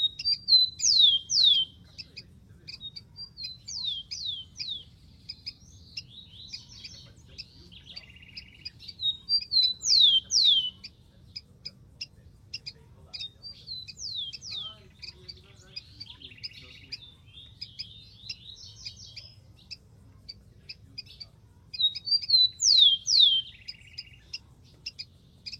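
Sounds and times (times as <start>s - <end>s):
rufous-collared sparrow song: 0.0s - 25.5s
soft chips and twitters: 0.0s - 25.5s.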